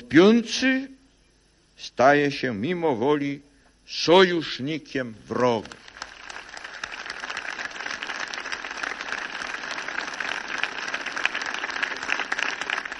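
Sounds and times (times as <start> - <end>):
speech: 0.1 - 0.9, 1.8 - 5.9
audience applause: 5.8 - 12.9.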